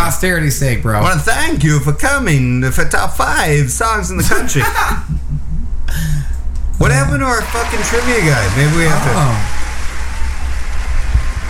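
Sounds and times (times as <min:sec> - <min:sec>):
speech: 0:00.1 - 0:05.2, 0:06.8 - 0:09.6
laughter: 0:04.1 - 0:06.2
canned applause sound effect: 0:07.2 - 0:11.4.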